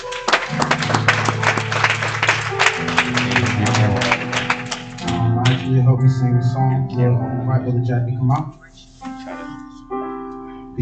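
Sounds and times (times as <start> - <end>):
audience hand clapping: 0.0 - 5.8
speech: 6.0 - 8.9.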